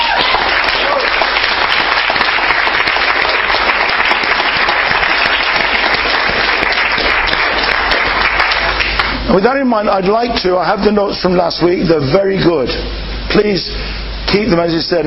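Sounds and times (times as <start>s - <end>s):
audience applause: 0.0s - 9.2s
speech: 9.3s - 15.0s.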